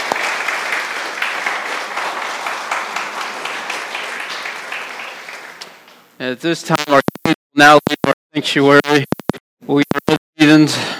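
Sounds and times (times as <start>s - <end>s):
applause for the worship team: 0.0s - 5.9s
speech: 6.2s - 10.9s.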